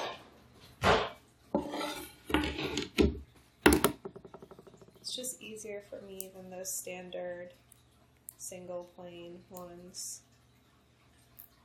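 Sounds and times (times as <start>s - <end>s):
Y peeler scraping along a butternut squash: 1.6s - 2.9s
speech: 5.2s - 7.7s, 8.5s - 10.3s.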